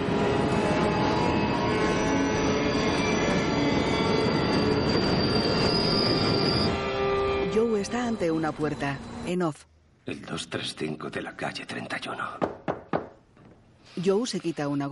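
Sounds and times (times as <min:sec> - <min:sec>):
train passing through without stopping: 0:00.0 - 0:09.4
high sustained train wheel squeals: 0:01.6 - 0:07.4
speech: 0:08.4 - 0:12.5, 0:14.0 - 0:14.8.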